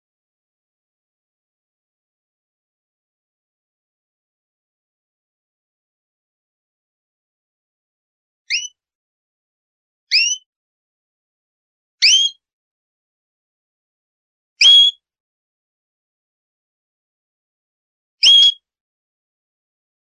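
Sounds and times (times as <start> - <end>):
canary buzzy trill of fast repeated notes: 8.5 - 8.8, 10.1 - 10.4, 12.0 - 12.4, 18.2 - 18.6.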